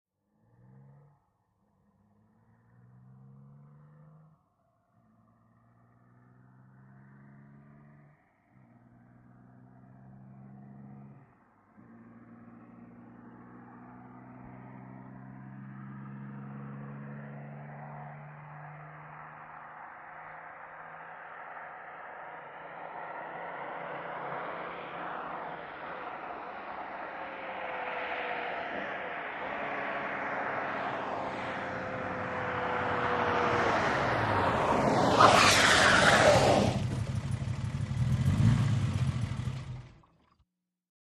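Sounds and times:
Aston Martin car approaching fast: 0.3 - 40.4
Aston Martin tyres skidding to a stop: 29.5 - 40.0.

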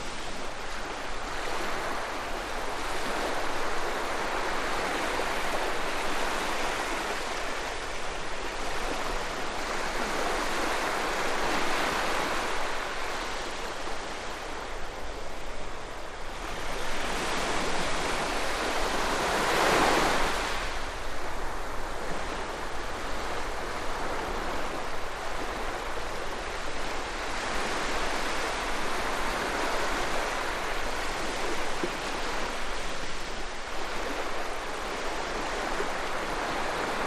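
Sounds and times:
waves: 0.0 - 37.0.

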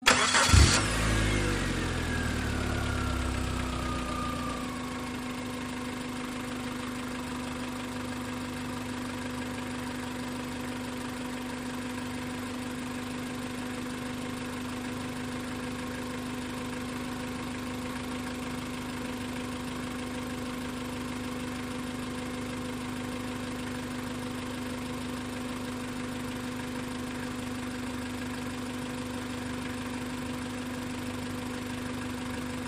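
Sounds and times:
small compact car engine idling then switched off: 0.0 - 32.6.

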